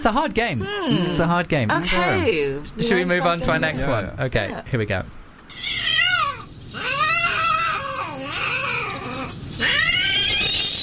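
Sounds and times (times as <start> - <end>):
speech: 0.0 - 5.8
cat in heat yowling: 5.5 - 10.8.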